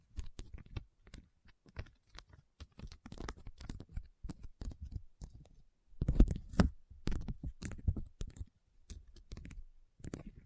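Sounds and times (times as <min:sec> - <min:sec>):
rhinestones being tapped and scratched: 0:00.0 - 0:10.4.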